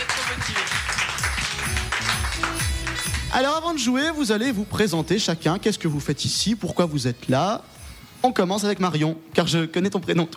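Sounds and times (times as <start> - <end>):
audience applause: 0.0 - 3.3
speech: 3.3 - 10.3.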